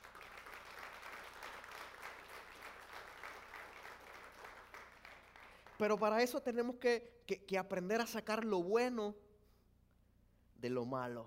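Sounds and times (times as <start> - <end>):
audience applause: 0.0 - 5.8
speech: 5.8 - 9.2, 10.6 - 11.2.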